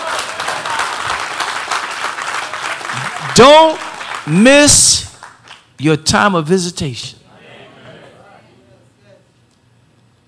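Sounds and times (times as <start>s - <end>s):
crowd clapping hands: 0.0s - 5.7s
speech: 3.4s - 5.1s, 5.8s - 7.2s.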